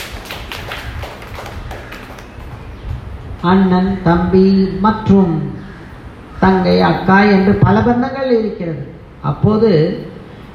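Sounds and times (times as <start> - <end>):
audience clapping hands: 0.0 - 2.8
speech: 3.4 - 5.6, 6.4 - 10.0.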